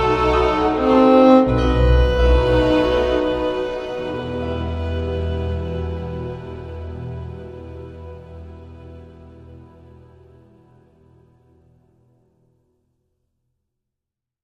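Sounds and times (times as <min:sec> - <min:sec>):
violin melody: 0:00.0 - 0:10.3.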